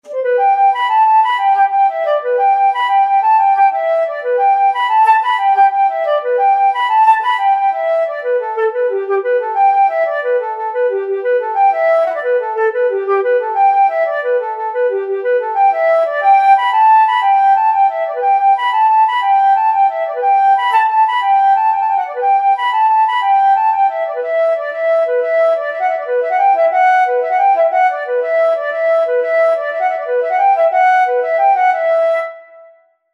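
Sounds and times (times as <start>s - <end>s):
flute: 0.0s - 33.1s.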